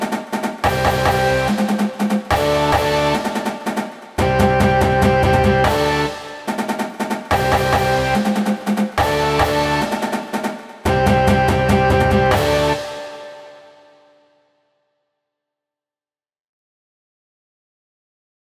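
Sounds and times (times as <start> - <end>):
band playing: 0.6 - 13.6.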